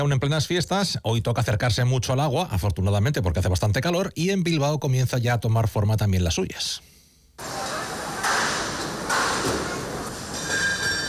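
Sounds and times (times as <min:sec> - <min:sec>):
speech: 0:00.0 - 0:07.6
assembling festival marquee tents: 0:07.4 - 0:11.0.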